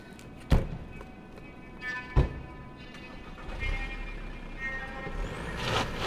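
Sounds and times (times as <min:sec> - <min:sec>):
car driving away: 0:03.0 - 0:06.0.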